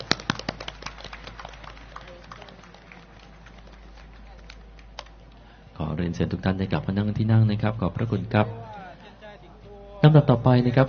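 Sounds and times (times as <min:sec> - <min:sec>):
audience applause: 0:00.0 - 0:05.6
speech: 0:05.9 - 0:08.7, 0:10.1 - 0:10.8.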